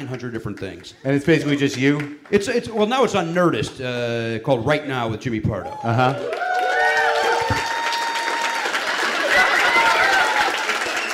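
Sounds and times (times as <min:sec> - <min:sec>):
crowd applauding: 0:00.0 - 0:02.6, 0:05.6 - 0:11.1
speech: 0:00.0 - 0:06.4
crowd cheering: 0:05.6 - 0:11.1
shrill whistles: 0:09.6 - 0:11.1.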